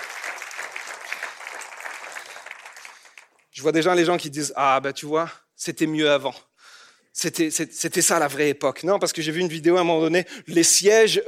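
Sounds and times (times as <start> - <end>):
audience applauding: 0.0 - 3.4
speech: 3.6 - 6.5, 7.2 - 11.2.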